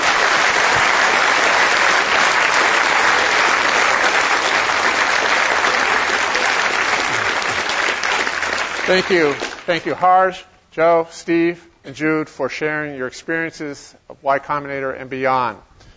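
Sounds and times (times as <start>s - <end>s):
audience applause: 0.0s - 10.0s
speech: 8.9s - 15.7s.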